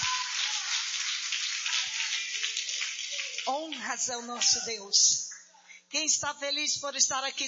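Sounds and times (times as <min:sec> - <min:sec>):
loud applause: 0:00.0 - 0:04.6
speech: 0:03.5 - 0:05.2, 0:05.9 - 0:07.4.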